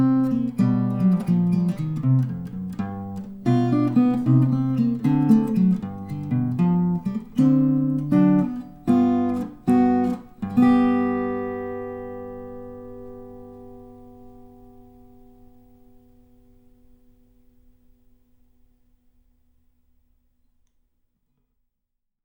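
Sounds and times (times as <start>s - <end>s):
blues music: 0.0s - 15.8s.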